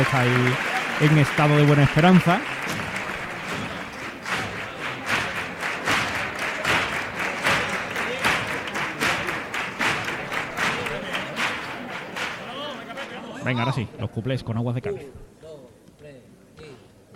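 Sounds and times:
speech: 0:00.0 - 0:02.8, 0:13.5 - 0:15.3
audience applause: 0:00.0 - 0:13.3.

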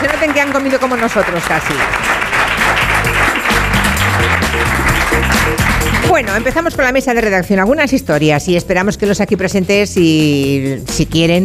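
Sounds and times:
audience applause: 0:00.0 - 0:06.6
speech: 0:00.4 - 0:02.2, 0:05.5 - 0:11.4.

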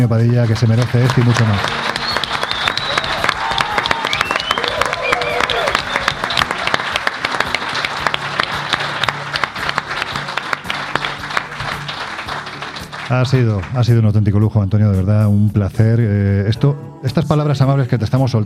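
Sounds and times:
speech: 0:00.0 - 0:02.0, 0:13.1 - 0:18.4
large audience applause: 0:00.0 - 0:13.8.

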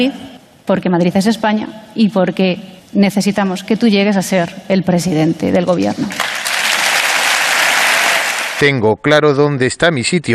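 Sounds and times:
speech: 0:00.0 - 0:06.4, 0:08.6 - 0:10.3
applause in parliament plenary: 0:06.1 - 0:08.6.

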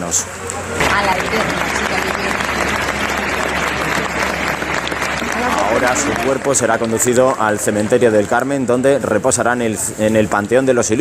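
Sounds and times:
speech: 0:00.1 - 0:01.6, 0:05.8 - 0:11.0
scattered voices: 0:00.3 - 0:11.0
large crowd applauding passing coffin: 0:00.8 - 0:09.8.

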